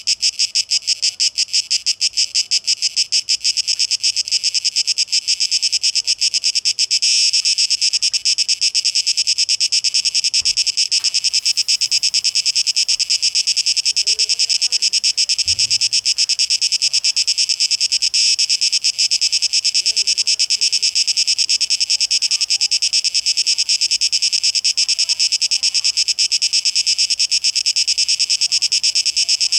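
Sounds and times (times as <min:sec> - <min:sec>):
cicada buzzing: 0:00.0 - 0:29.5
low thud: 0:15.4 - 0:16.0.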